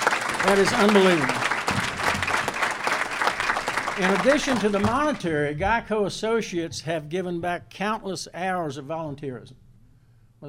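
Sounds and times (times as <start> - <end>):
audience applause: 0.0 - 5.3
speech: 0.4 - 1.4, 4.0 - 9.6.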